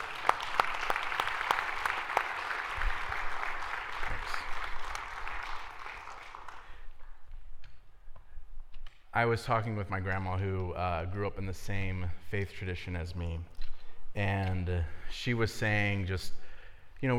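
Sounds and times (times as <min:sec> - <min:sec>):
group applause: 0:00.0 - 0:06.9
speech: 0:09.2 - 0:13.6, 0:14.2 - 0:16.4, 0:17.0 - 0:17.1.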